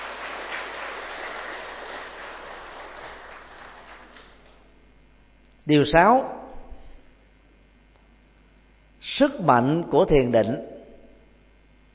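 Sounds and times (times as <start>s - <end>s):
audience applause: 0.0s - 4.7s
speech: 5.7s - 6.4s, 9.2s - 10.7s.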